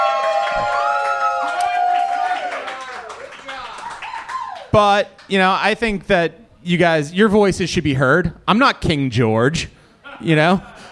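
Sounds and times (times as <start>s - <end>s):
crowd cheering and whooping: 0.0s - 4.7s
people clapping: 0.0s - 5.3s
speech: 4.7s - 10.7s.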